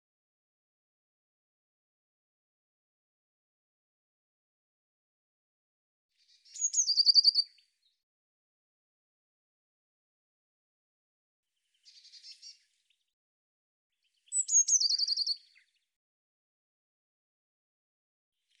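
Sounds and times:
bird singing: 6.2 - 8.0, 11.6 - 13.1, 13.9 - 15.9.

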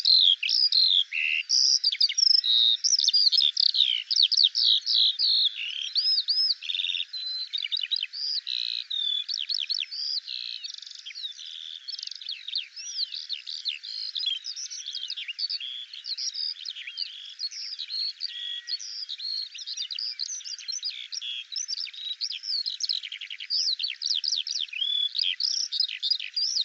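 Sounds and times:
Eurasian skylark song: 0.0 - 26.6.

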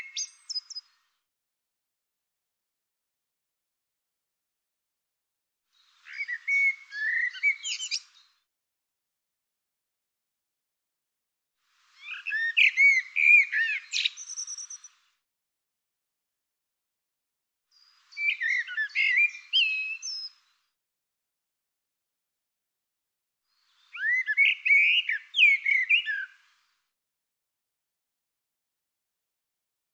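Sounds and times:
bird singing bright phrases of varied whistles and chirps: 0.0 - 1.0, 5.8 - 8.4, 12.0 - 15.0, 17.7 - 20.7, 23.5 - 26.5.

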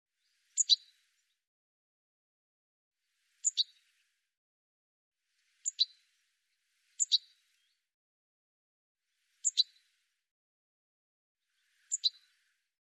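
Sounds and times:
high bird chirps: 0.6 - 0.8, 9.4 - 9.7, 11.9 - 12.2.

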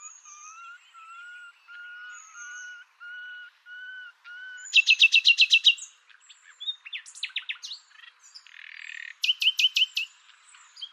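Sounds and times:
bird song with high whistle, buzzy trills and chattering notes: 0.0 - 10.9.

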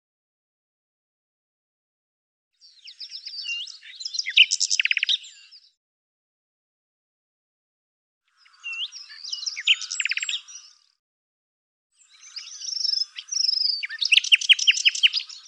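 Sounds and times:
bird singing rapid chirps, buzzy trills and whistled notes: 2.6 - 5.8, 8.3 - 11.0, 12.0 - 15.4.

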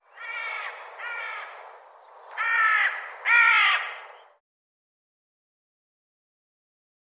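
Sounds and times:
bird harsh caw-like calls: 0.0 - 1.6, 2.3 - 4.3.

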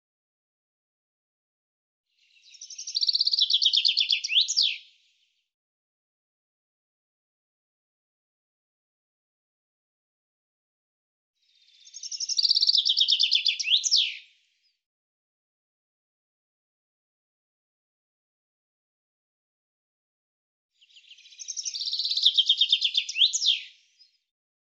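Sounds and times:
bird song in rapid high trilled phrases: 2.2 - 5.0, 11.5 - 14.8, 20.8 - 24.3.

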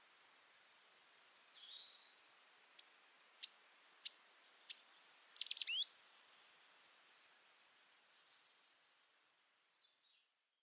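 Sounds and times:
high sharp bird chirps and thin whistles: 1.6 - 5.9.

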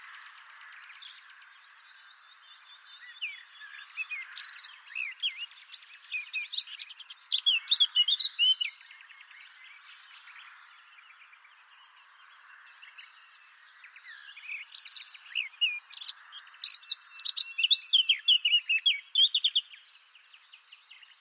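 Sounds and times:
bird song with sharp rapid twittering: 3.0 - 8.8, 14.1 - 19.7.

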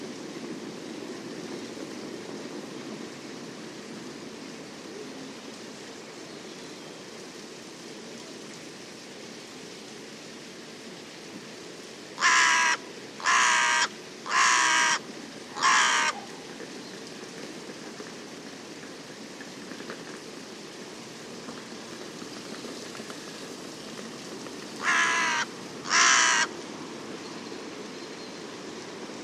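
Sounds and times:
bird cawing: 12.2 - 16.4, 24.8 - 26.6.

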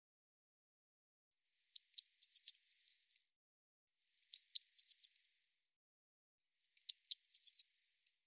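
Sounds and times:
Eurasian blue tit song: 1.5 - 3.3, 4.2 - 5.3, 6.7 - 8.0.

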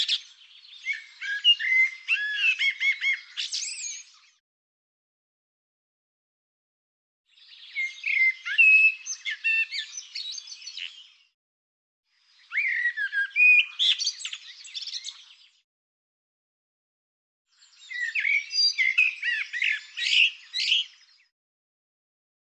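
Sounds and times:
bird song: 0.0 - 4.4, 7.3 - 11.4, 12.1 - 15.7, 17.5 - 21.4.

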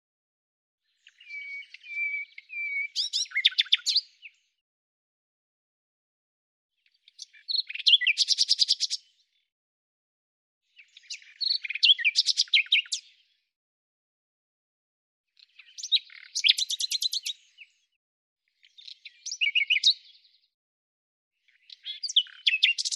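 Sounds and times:
bird song: 0.8 - 4.6, 6.7 - 9.6, 10.6 - 13.6, 15.3 - 20.6, 21.4 - 22.9.

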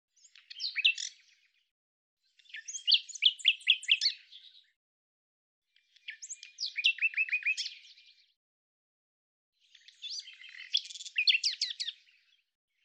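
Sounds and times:
common nightingale song: 0.2 - 1.4, 2.4 - 4.7, 5.9 - 8.2, 9.6 - 12.3.

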